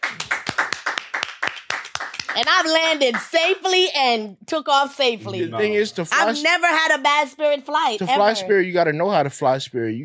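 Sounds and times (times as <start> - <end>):
audience clapping hands: 0.0 - 3.6
speech: 2.4 - 10.0.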